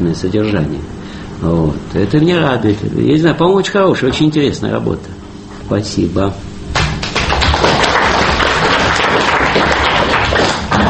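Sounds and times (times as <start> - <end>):
speech: 0.0 - 6.5
group applause after a presentation: 6.8 - 10.8.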